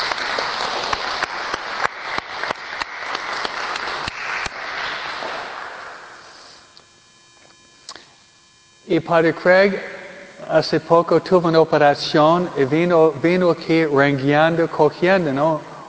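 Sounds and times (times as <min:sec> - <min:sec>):
audience applause: 0:00.0 - 0:06.3
speech: 0:08.9 - 0:09.9, 0:10.5 - 0:15.7.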